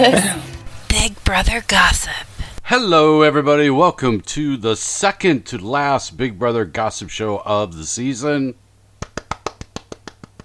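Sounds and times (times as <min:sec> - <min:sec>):
speech: 0:00.0 - 0:08.6
person clapping: 0:09.0 - 0:10.4.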